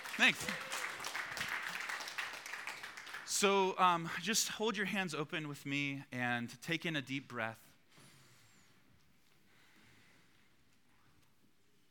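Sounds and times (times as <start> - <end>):
applause: 0.0 - 3.9
speech: 0.2 - 0.7, 3.3 - 7.6.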